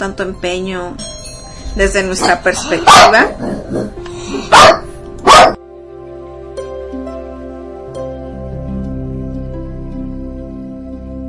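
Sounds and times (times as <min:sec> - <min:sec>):
speech: 0:00.0 - 0:01.2, 0:01.8 - 0:04.8
layered doorbell ringing tone: 0:01.0 - 0:02.4
small female pet dog barking at doorbell: 0:02.2 - 0:03.4, 0:04.5 - 0:05.6.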